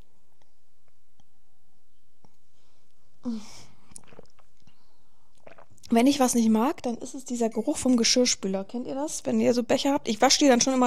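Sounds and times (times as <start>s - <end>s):
speech: 3.2s - 3.6s, 5.9s - 10.8s
person sipping a drink: 3.2s - 5.9s
swallow: 3.2s - 5.9s.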